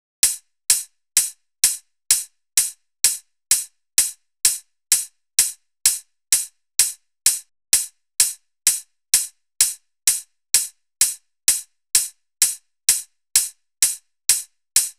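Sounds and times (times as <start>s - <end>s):
hi-hat loop: 0.2s - 14.9s.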